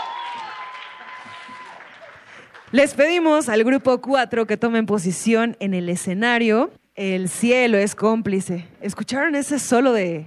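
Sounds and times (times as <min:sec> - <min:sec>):
audience applause: 0:00.0 - 0:02.8
speech: 0:02.7 - 0:10.2.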